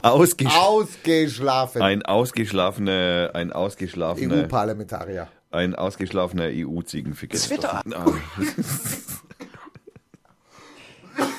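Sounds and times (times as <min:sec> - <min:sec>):
speech: 0:00.0 - 0:09.1
laughter: 0:07.3 - 0:10.3
person coughing: 0:07.9 - 0:10.0, 0:11.1 - 0:11.3.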